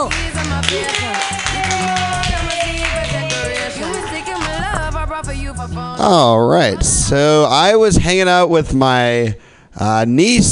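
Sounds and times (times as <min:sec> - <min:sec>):
audience clapping: 0:00.0 - 0:05.0
music: 0:00.0 - 0:08.0
speech: 0:05.5 - 0:10.5.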